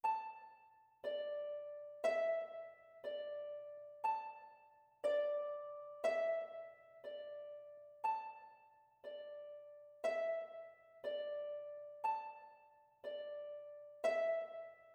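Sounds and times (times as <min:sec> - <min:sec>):
harp: 0:00.0 - 0:14.9.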